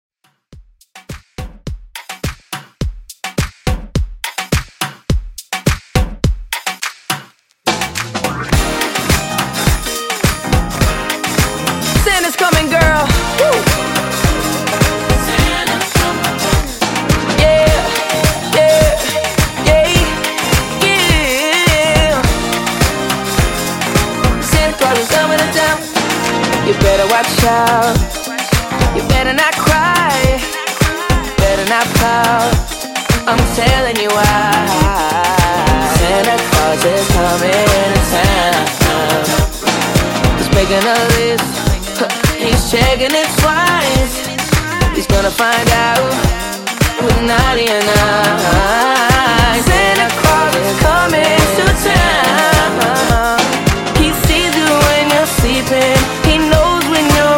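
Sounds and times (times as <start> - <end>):
extended drum loop: 0.5 - 57.3.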